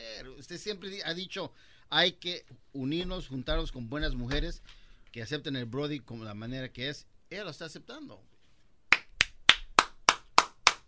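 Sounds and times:
speech: 0.4s - 8.3s
hand clapping: 8.9s - 10.8s.

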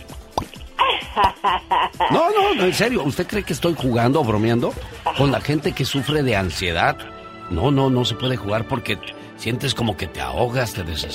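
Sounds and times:
mouth popping imitating chewing gum bubbles: 0.0s - 2.7s
laughter: 0.8s - 4.0s, 4.7s - 6.6s
speech: 1.2s - 11.1s.

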